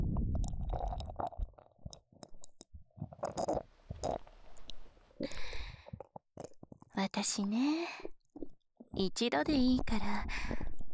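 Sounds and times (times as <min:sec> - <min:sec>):
ear licking: 0:00.2 - 0:06.9
person speaking: 0:09.0 - 0:10.3.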